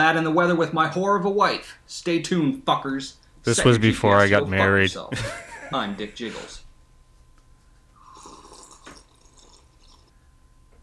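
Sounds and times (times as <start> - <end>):
speech: 0.0 - 6.6
laughter: 5.0 - 6.6
slurping a drink: 8.0 - 10.2.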